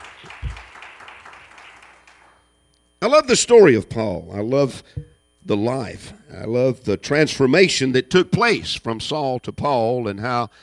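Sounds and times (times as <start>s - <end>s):
church congregation clapping in praise: 0.0s - 2.4s
speech: 3.1s - 10.6s.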